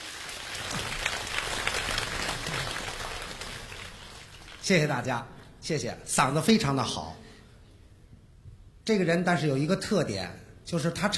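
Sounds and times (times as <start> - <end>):
audience applause at a Beijing comedy crosstalk show: 0.0 - 4.7
speech: 4.7 - 7.2, 8.8 - 11.1.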